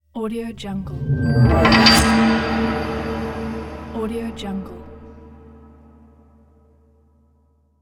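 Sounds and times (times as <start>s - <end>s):
East Asian gong: 0.5s - 6.2s.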